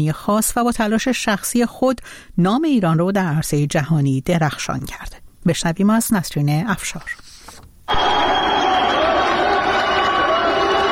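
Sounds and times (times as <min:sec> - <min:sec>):
speech: 0:00.0 - 0:07.3
crowd cheering: 0:07.9 - 0:10.9.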